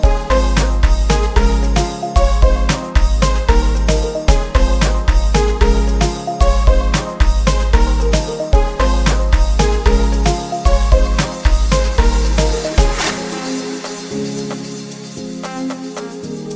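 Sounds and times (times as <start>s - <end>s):
808 bass hard kick drum: 0.0s - 13.2s.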